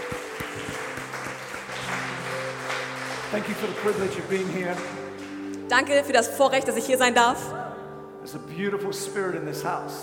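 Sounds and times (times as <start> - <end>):
audience applause: 0.0 - 5.5
speech: 3.3 - 5.0, 5.7 - 7.6, 8.2 - 10.0.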